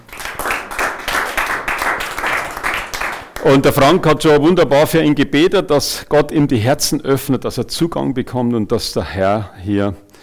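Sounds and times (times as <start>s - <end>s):
audience applause: 0.0s - 3.4s
speech: 3.4s - 10.0s.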